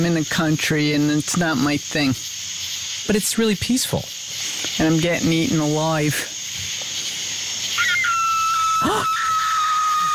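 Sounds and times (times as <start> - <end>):
speech: 0.0 - 2.5, 3.1 - 6.3
steady hiss of insects: 0.0 - 10.1
coyote or fox call at night: 7.8 - 10.1.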